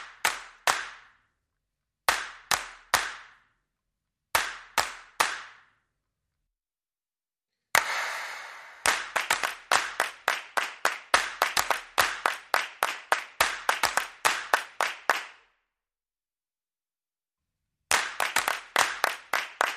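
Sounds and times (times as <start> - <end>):
hands clapping: 0.0 - 1.2, 2.1 - 3.5, 4.4 - 5.8, 7.8 - 15.6, 17.9 - 19.7.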